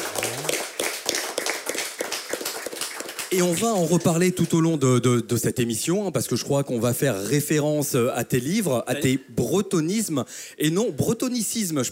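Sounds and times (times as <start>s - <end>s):
small studio audience hands clapping: 0.0s - 4.6s
speech: 3.3s - 11.8s.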